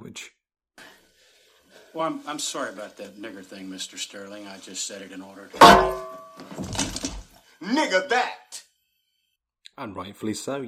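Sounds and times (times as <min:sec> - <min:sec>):
speech: 0:00.2 - 0:00.4, 0:02.0 - 0:06.7, 0:07.6 - 0:08.4, 0:09.8 - 0:10.6
loud smack from a frying pan: 0:05.6 - 0:07.1
rustling and scuffling: 0:05.6 - 0:07.4.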